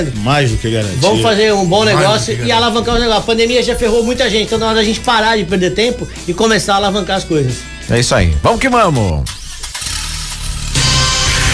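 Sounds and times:
speech: 0:00.0 - 0:09.4
engine starting and revving at high RPM: 0:09.0 - 0:11.5.

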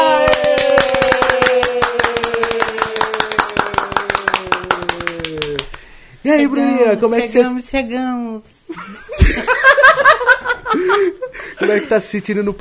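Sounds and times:
applause, hands clapping: 0:00.0 - 0:05.9
speech: 0:06.3 - 0:12.5
laughter: 0:08.7 - 0:12.0.

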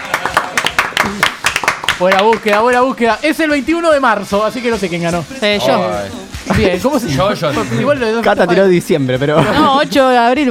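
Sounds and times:
applause: 0:00.0 - 0:03.0
speech: 0:02.0 - 0:10.4
laughter: 0:09.2 - 0:10.1.

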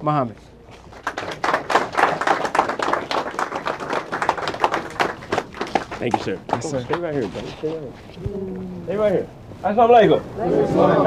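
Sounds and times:
speech: 0:00.0 - 0:00.6, 0:06.0 - 0:11.0
round of applause: 0:00.7 - 0:07.2.

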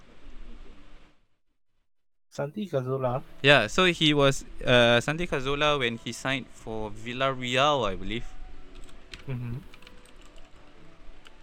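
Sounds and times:
speech: 0:02.4 - 0:08.4, 0:09.3 - 0:09.7
computer keyboard typing during an online search: 0:08.8 - 0:11.4.

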